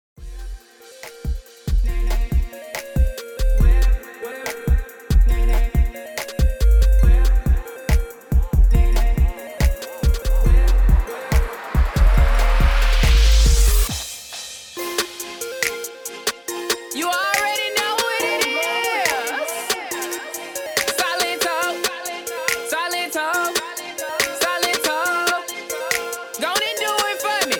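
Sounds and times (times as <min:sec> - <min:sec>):
solo hip hop music: 0:00.2 - 0:27.5.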